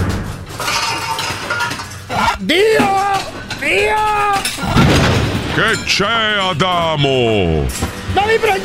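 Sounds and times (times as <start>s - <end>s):
metal pots and pans clanking and clattering: 0.0s - 6.7s
speech: 2.4s - 3.0s, 5.6s - 8.6s.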